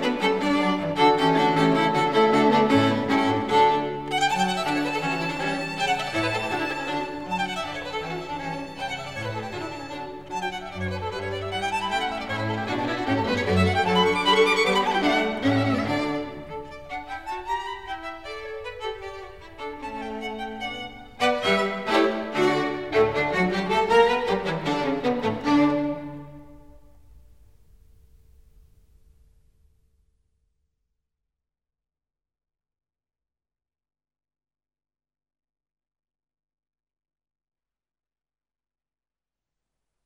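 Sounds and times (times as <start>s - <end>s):
string quartet playing in D, molto allegro: 0.0s - 26.8s.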